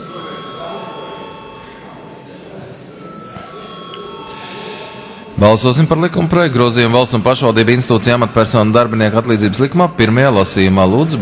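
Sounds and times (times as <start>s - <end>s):
parliamentary chamber bell ringing: 0.0s - 6.2s
murmuring background: 0.0s - 9.3s
speech: 5.4s - 11.2s.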